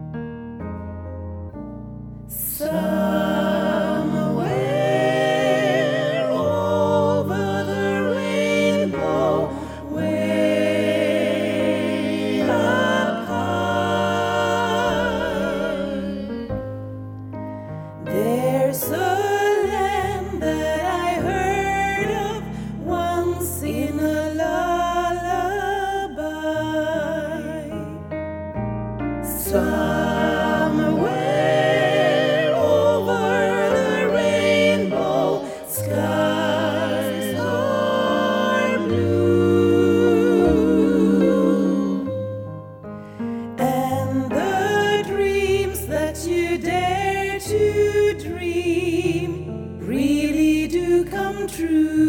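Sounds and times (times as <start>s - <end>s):
SATB four-part choir singing: 2.3s - 17.0s, 18.0s - 27.8s, 29.2s - 52.0s.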